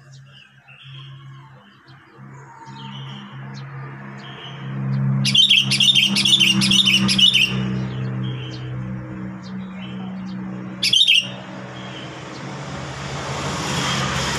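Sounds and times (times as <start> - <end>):
low engine drone: 0.0 - 14.3
sooty-headed bulbul warbling: 5.2 - 7.7, 10.8 - 11.4.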